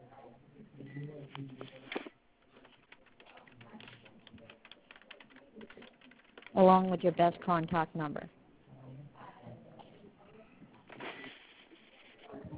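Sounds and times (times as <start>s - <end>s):
speech: 1.4s - 1.8s, 6.6s - 8.4s
keyboard typing an email address: 2.4s - 7.9s.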